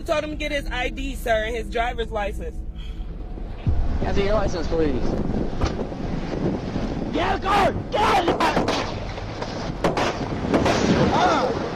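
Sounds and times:
speech: 0.0 - 2.9, 4.0 - 8.6
gunshot: 8.3 - 11.5.

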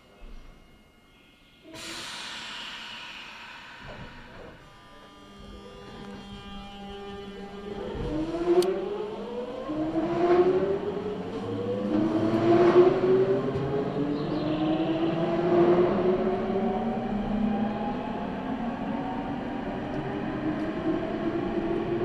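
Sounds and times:
Nankai Line local train motor whine: 0.1 - 22.0
sharp hiss: 1.7 - 5.4.

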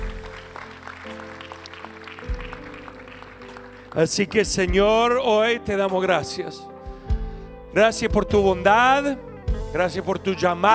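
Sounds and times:
audience applauding: 0.0 - 4.8
sustained keyboard chords: 0.0 - 10.7
speech: 3.9 - 6.7, 7.7 - 10.7.

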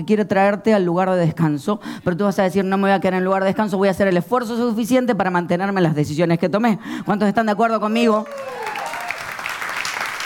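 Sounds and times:
speech: 0.0 - 8.7
crowd applause: 8.2 - 10.2.

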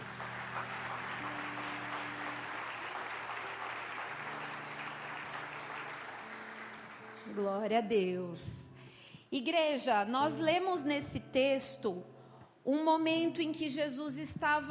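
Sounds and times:
audience applauding: 0.0 - 7.5
speech: 7.3 - 8.6, 9.3 - 14.6.

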